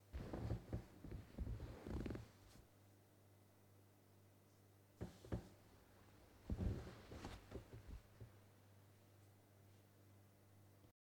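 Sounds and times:
person sitting on couch: 0.0s - 2.7s, 5.0s - 8.4s.

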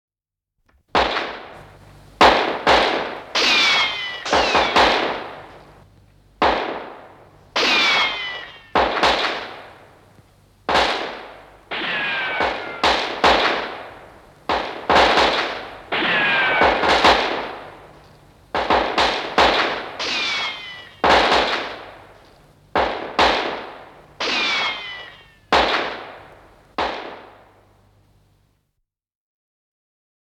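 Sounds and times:
western movie style gunbattle: 0.9s - 5.8s, 6.4s - 27.7s.

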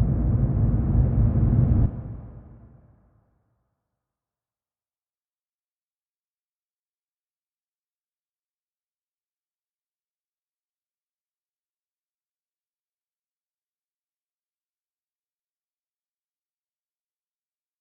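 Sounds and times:
long cinematic sweep: 0.0s - 3.1s.

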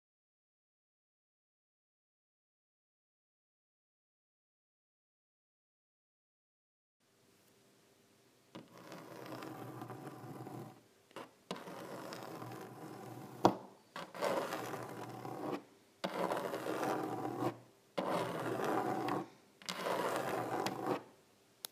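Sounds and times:
nails scratching: 8.6s - 21.1s.

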